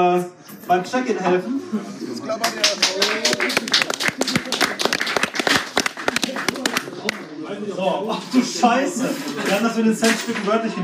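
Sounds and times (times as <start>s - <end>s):
speech: 0.0s - 4.3s, 7.7s - 10.8s
crowd clapping: 2.4s - 7.4s.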